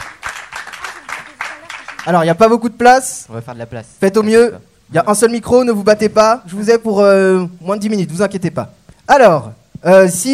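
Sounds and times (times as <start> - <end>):
audience applause: 0.0 - 2.3
speech: 2.0 - 10.3.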